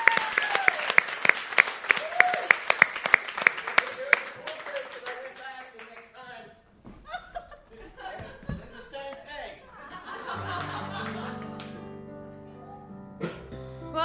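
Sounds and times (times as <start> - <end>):
audience round of applause: 0.0 - 6.4, 9.9 - 11.8
laughter: 7.0 - 11.8.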